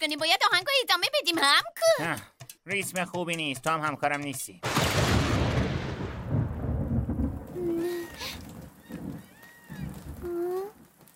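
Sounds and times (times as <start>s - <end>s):
speech: 0.0s - 5.2s
heavy rolling thunder: 4.6s - 10.3s
light rain pattering: 4.6s - 11.1s.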